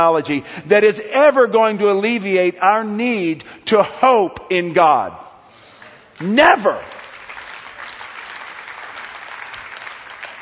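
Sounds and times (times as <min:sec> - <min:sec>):
speech: 0:00.0 - 0:05.2, 0:06.2 - 0:07.0
audience clapping: 0:05.8 - 0:10.4.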